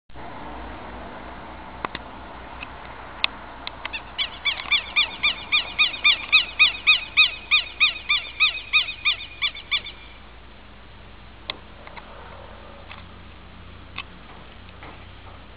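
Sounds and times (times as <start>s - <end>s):
Southern lapwing harsh strident calls: 3.9s - 10.3s.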